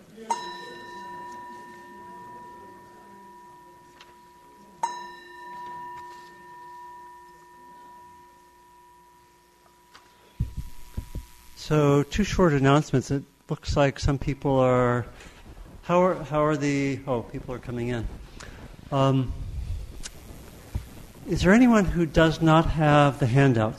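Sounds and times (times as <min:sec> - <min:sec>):
bell ringing: 0:00.2 - 0:12.3
speech: 0:11.7 - 0:15.3, 0:15.9 - 0:18.2, 0:18.9 - 0:19.4, 0:21.3 - 0:23.7.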